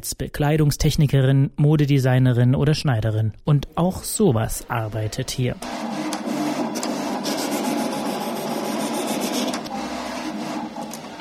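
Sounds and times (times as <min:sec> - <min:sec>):
speech: 0:00.0 - 0:06.0
large plotter cutting patterns from cardboard: 0:04.4 - 0:11.1.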